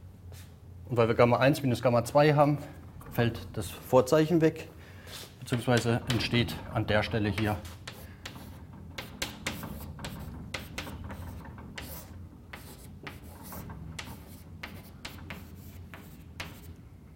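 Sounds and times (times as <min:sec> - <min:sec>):
speech: 0:00.9 - 0:07.8
scratchy handwriting of a physics equation: 0:07.8 - 0:16.7.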